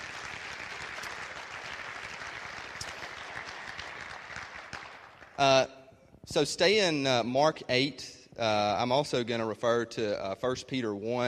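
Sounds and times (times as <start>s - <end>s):
audience applause: 0.0s - 5.4s
speech: 5.4s - 5.7s, 6.3s - 11.2s.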